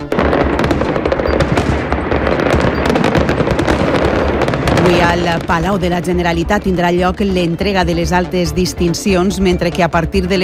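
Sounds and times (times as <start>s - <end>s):
fireworks bangs and crackles: 0.0s - 8.2s
speech: 5.1s - 10.4s.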